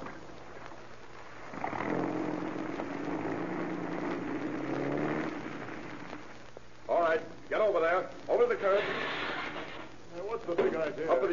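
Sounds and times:
car rolling off: 1.5 - 6.3
speech: 7.6 - 9.2, 10.3 - 11.3.

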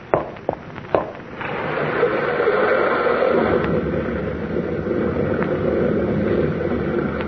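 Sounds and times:
rock slide down a river gorge: 0.2 - 7.2.

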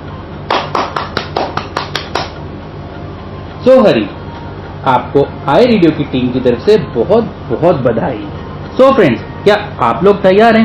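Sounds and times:
hand clapping for a contest winner: 0.5 - 2.4
speech: 3.6 - 4.2, 4.8 - 10.6.

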